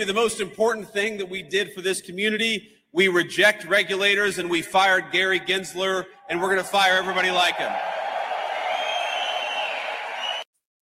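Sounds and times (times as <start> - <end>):
speech: 0.0 - 8.0
large crowd cheering and roaring: 6.2 - 10.5.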